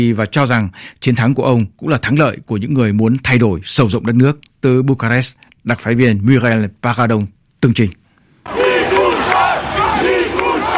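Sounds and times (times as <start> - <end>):
speech: 0.0 - 8.6
crowd cheering a newly elected president in Bucharest: 8.4 - 10.7.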